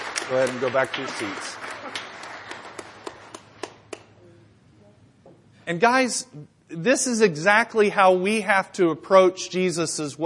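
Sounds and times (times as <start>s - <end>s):
steady evenly spaced hand claps: 0.0s - 4.2s
faint steady hum: 0.0s - 10.2s
speech: 0.3s - 1.7s, 5.7s - 10.2s.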